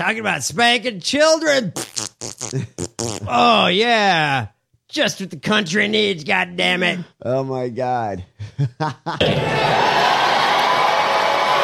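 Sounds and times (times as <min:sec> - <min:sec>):
speech: 0:00.0 - 0:10.1
crowd screaming and cheering: 0:09.2 - 0:11.6.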